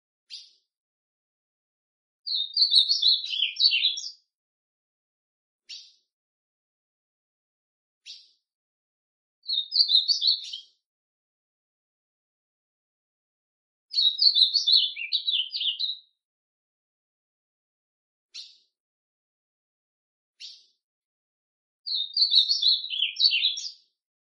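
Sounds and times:
ultramarine grosbeak song: 0:00.3 - 0:00.7, 0:02.3 - 0:04.3, 0:05.7 - 0:06.1, 0:08.0 - 0:08.4, 0:09.4 - 0:10.8, 0:13.9 - 0:16.2, 0:18.3 - 0:18.7, 0:20.4 - 0:20.8, 0:21.9 - 0:24.0.

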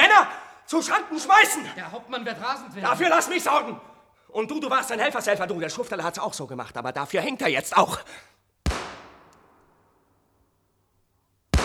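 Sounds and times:
speech: 0:00.7 - 0:08.4
gunshots fired by a captain in a radio play of Schiller's Die Räuber: 0:08.7 - 0:10.0.

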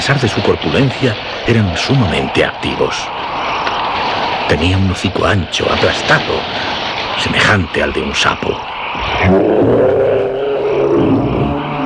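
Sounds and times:
speech: 0:00.0 - 0:03.4, 0:04.5 - 0:10.1
carnivorous dinosaur roar: 0:09.0 - 0:11.8.

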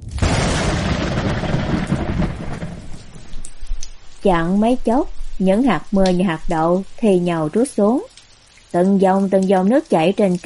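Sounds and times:
rumbling thunder: 0:00.0 - 0:06.5
speech: 0:04.2 - 0:08.1, 0:08.7 - 0:10.4.

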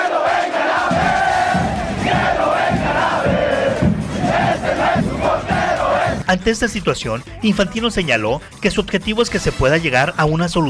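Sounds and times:
huge stadium crowd chanting at goalkeeper's clearance: 0:00.0 - 0:06.3
speech: 0:06.3 - 0:10.6.

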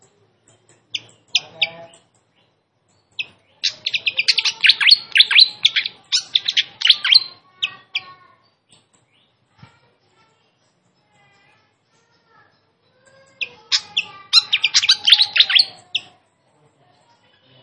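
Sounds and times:
flycatcher giving sharp high notes: 0:03.2 - 0:08.1, 0:13.2 - 0:16.2.

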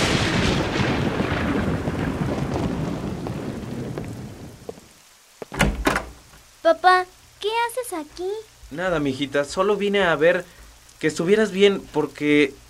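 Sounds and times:
deep rumbling thunder: 0:00.0 - 0:04.9
heavy rain hissing: 0:00.0 - 0:12.6
speech: 0:06.7 - 0:12.6.

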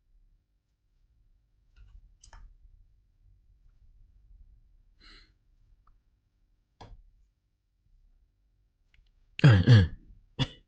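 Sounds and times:
harsh coughing from a person with an ongoing cough: 0:09.4 - 0:10.6
person clearing throat: 0:09.4 - 0:10.6.

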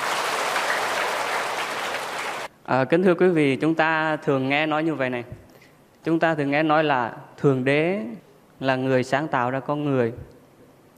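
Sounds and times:
audience applause: 0:00.0 - 0:02.5
speech: 0:02.7 - 0:05.4, 0:06.0 - 0:10.4.

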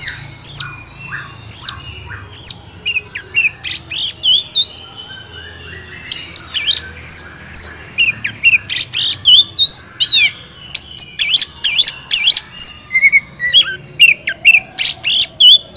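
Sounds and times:
Oriental magpie-robin song: 0:00.0 - 0:15.7.

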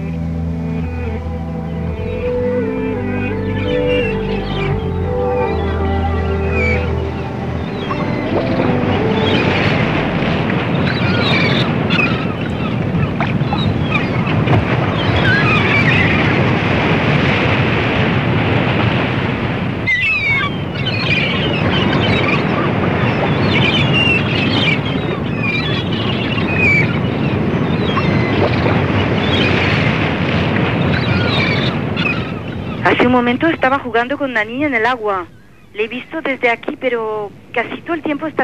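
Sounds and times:
large ocean waves crashing: 0:00.0 - 0:38.4
speech: 0:33.3 - 0:38.4.

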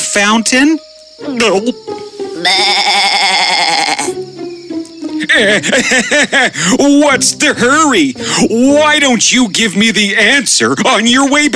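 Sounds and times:
speech: 0:00.2 - 0:03.0, 0:05.4 - 0:11.5
goat bleating: 0:02.3 - 0:04.2
laughter: 0:05.1 - 0:08.9.

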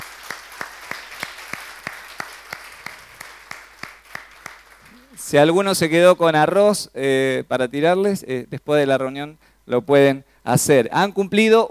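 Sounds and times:
audience applause for a couple: 0:00.0 - 0:05.2
speech: 0:05.2 - 0:11.6.

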